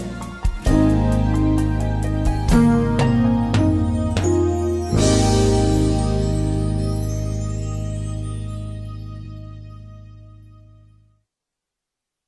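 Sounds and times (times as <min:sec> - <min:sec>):
alto saxophone backing track: 0:00.0 - 0:07.9.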